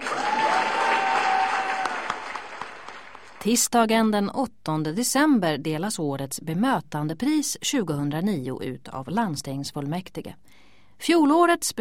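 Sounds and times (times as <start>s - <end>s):
applause: 0.0s - 3.4s
speech: 3.4s - 11.8s.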